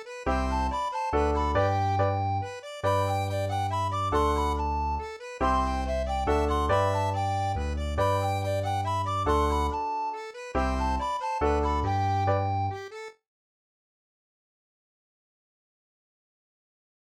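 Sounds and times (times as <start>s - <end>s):
mazurka: 0.0s - 13.1s.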